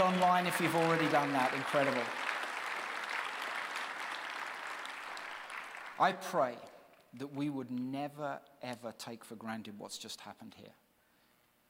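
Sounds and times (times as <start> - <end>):
audience cheering: 0.0 - 5.9
audience clapping: 0.0 - 7.9
speech: 0.2 - 2.2, 6.0 - 10.8.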